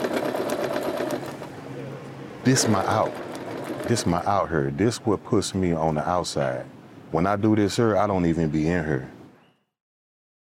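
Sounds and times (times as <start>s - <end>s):
sewing machine stitching in a prison workshop: 0.0s - 1.6s, 2.4s - 4.4s
speech: 2.4s - 9.2s.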